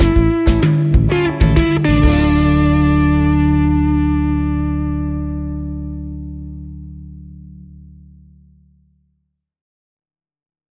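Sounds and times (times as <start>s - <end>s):
guitar combo amplifier demo track: 0.0s - 8.4s.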